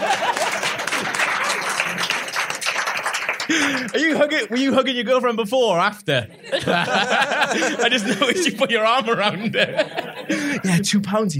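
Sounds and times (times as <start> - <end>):
applause: 0.0 - 4.3
laughter: 0.0 - 4.6, 6.3 - 10.9
speech: 3.5 - 10.0, 10.6 - 11.3.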